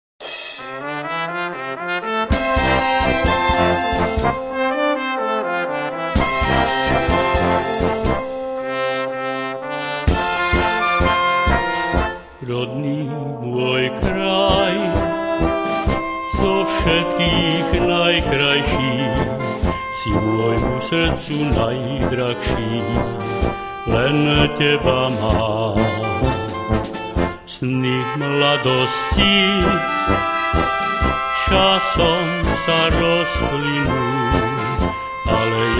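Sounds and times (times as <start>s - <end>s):
tango music: 0.8s - 35.7s.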